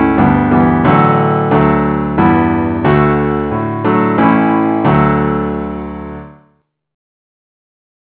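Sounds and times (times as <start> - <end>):
keyboard playing in D: 0.0 - 6.4.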